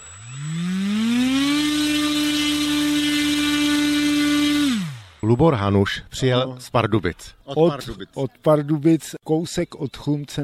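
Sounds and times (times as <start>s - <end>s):
model airplane engine running: 0.0s - 5.2s
speech: 5.3s - 10.4s.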